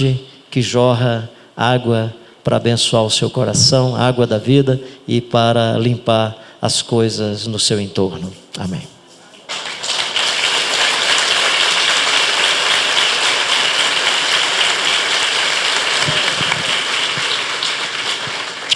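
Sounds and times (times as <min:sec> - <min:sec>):
speech: 0:00.0 - 0:08.9
audience clapping: 0:09.5 - 0:18.7.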